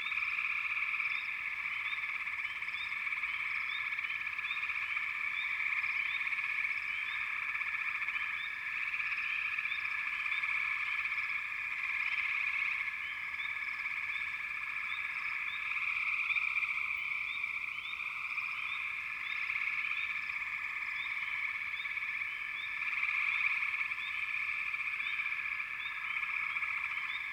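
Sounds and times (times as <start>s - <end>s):
frog chorus in the American wilds: 0.0s - 27.3s.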